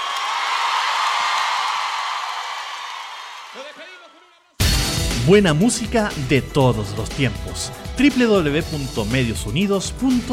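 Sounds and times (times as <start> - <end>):
whoops and cheers: 0.0 - 3.9
audience applause: 0.0 - 4.1
speech: 5.3 - 10.3.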